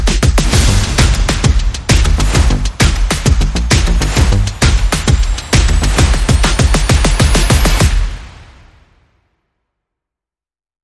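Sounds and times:
bass: 0:00.0 - 0:08.1
percussion: 0:00.0 - 0:08.9
sound effects: 0:00.4 - 0:09.1.

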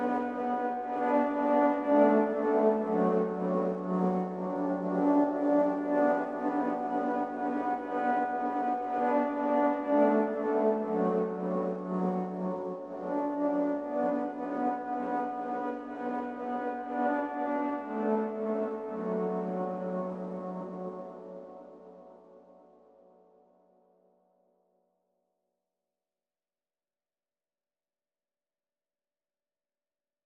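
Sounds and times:
synth pad: 0:00.0 - 0:22.6.

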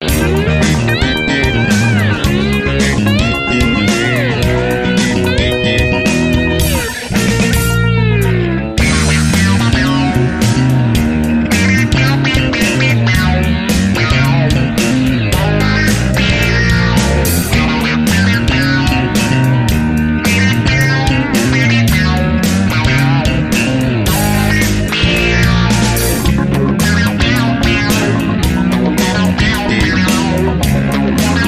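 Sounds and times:
funk music: 0:00.0 - 0:31.4.

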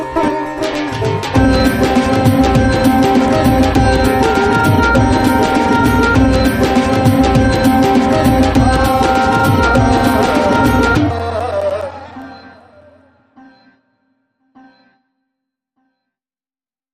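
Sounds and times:
raga sting: 0:00.1 - 0:13.6.

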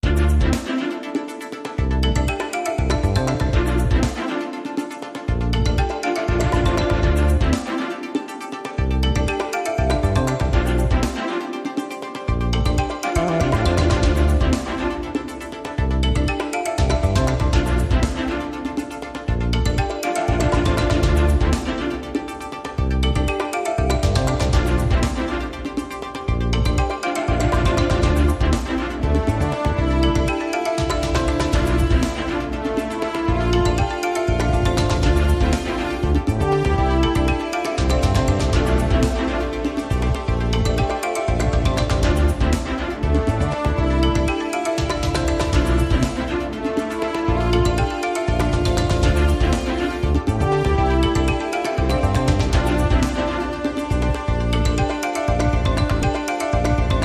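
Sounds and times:
commercial break segue music: 0:00.0 - 0:57.0.

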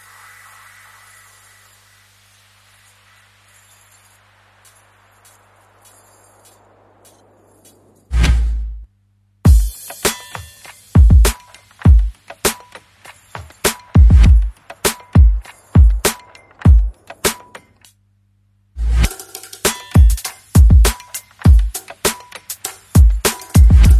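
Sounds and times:
drums: 0:04.6 - 0:17.9, 0:18.8 - 0:23.9.

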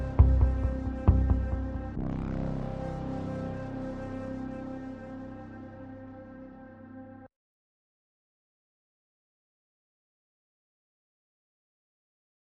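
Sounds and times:
synth pads: 0:00.0 - 0:07.3.

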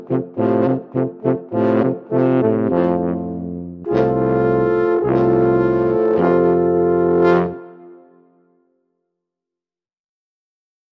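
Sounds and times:
alphorn: 0:00.0 - 0:08.0.

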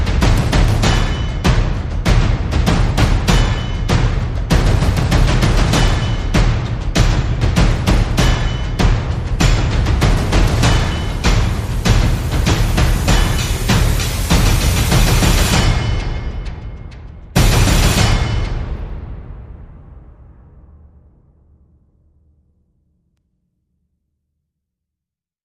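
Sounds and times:
percussion: 0:00.0 - 0:21.8
sound effects: 0:09.9 - 0:19.7.

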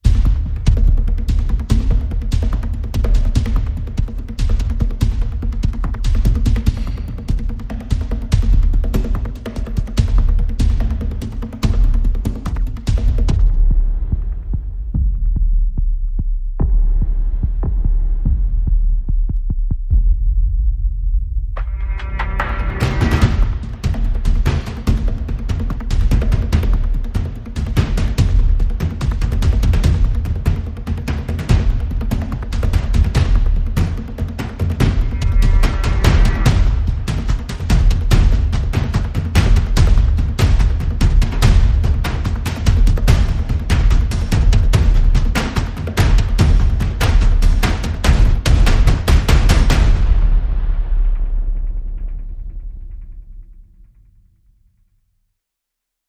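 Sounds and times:
percussion and effects: 0:00.0 - 0:54.3.

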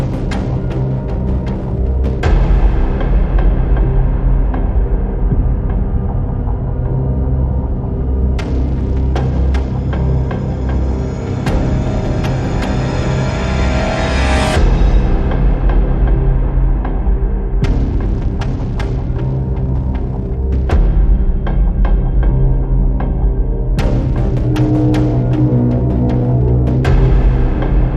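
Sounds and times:
drums: 0:00.0 - 0:07.2, 0:08.4 - 0:27.9
bass: 0:00.0 - 0:27.9.

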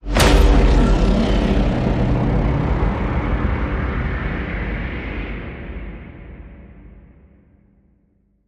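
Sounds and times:
big sonic bomb hit: 0:00.0 - 0:07.1.

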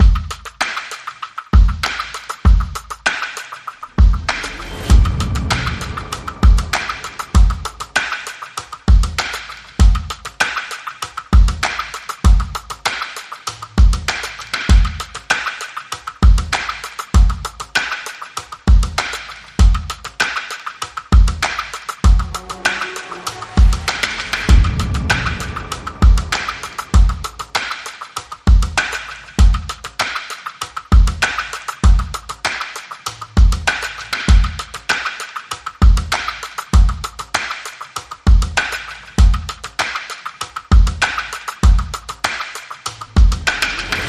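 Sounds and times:
drums: 0:00.0 - 0:44.0
sound effects: 0:03.9 - 0:08.2, 0:22.0 - 0:27.7.

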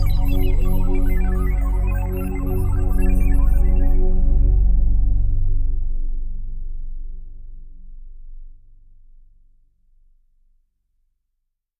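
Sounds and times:
particles drone: 0:00.0 - 0:08.7.

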